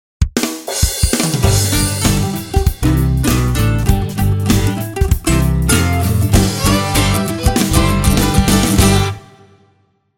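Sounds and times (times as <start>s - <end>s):
music stinger: 1.4s - 10.0s.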